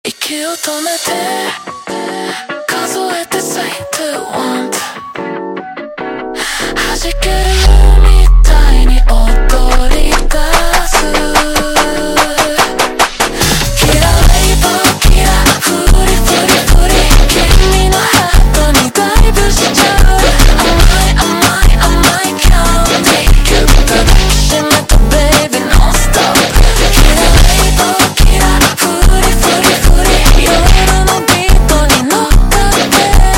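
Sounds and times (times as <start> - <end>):
slowed brega funk music: 7.0 - 33.3.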